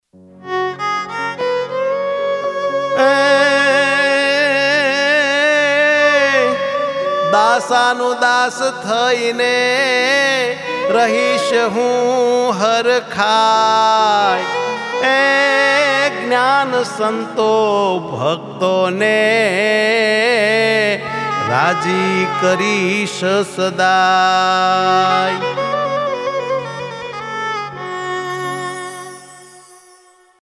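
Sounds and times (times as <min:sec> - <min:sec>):
violin: 0:00.2 - 0:30.4.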